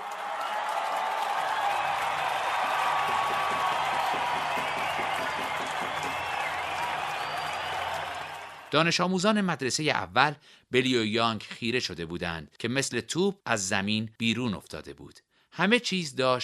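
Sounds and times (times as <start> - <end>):
large audience applause: 0.0 - 8.8
speech: 8.7 - 16.4.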